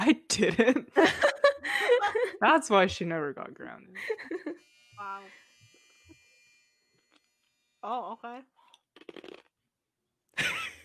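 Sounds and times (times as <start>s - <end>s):
laughter: 0.0s - 2.5s, 4.0s - 4.6s, 10.4s - 10.8s
speech: 0.1s - 1.3s, 2.4s - 5.4s, 7.8s - 9.4s
chewing on ice: 8.6s - 9.5s.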